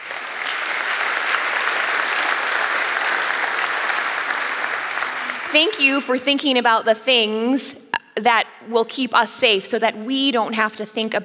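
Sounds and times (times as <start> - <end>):
audience applause: 0.0 - 5.9
speech: 5.5 - 11.2.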